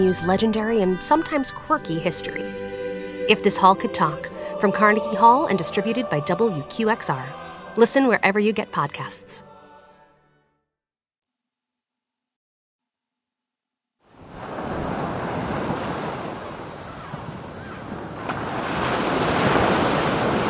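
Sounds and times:
speech: 0.0 - 9.5
ocean surf: 14.1 - 20.4.

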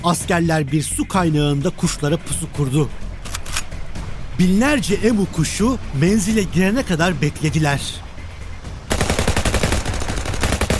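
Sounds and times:
speech: 0.0 - 3.0, 4.4 - 8.0
machine gun fire: 8.9 - 10.7.

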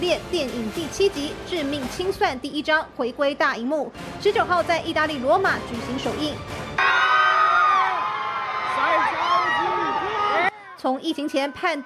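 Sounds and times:
speech: 0.0 - 7.1, 10.8 - 11.8
fans screaming at film premiere: 6.8 - 11.8.

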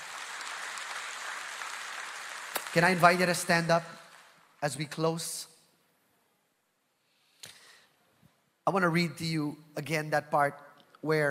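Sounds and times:
audience clapping hands: 0.0 - 5.1
speech: 2.8 - 4.0, 4.6 - 5.5, 8.7 - 11.2.

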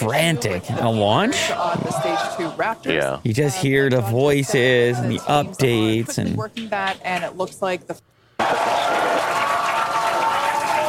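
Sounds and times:
speech: 0.0 - 9.0
crowd cheering and applauding at rocket launch: 8.4 - 10.8.

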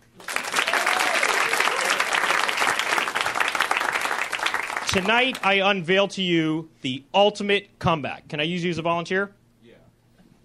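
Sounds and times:
audience applause: 0.0 - 5.5
faint cheering: 0.2 - 3.9
speech: 4.9 - 9.4.

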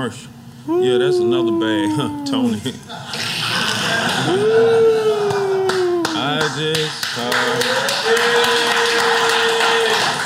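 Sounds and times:
speech: 0.0 - 3.2, 3.9 - 4.9, 6.5 - 9.2
laughter: 1.6 - 6.1
slow clap: 5.2 - 10.2.

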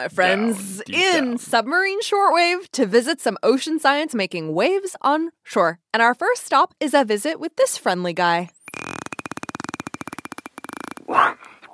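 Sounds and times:
speech: 0.0 - 8.8
bottlenose dolphin buzzing pulses: 8.6 - 11.3.

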